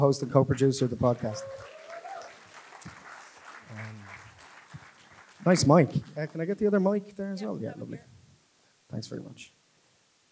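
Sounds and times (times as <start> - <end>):
speech: 0.0 - 1.7, 5.4 - 8.1, 8.9 - 9.6
audience applause: 0.6 - 6.8.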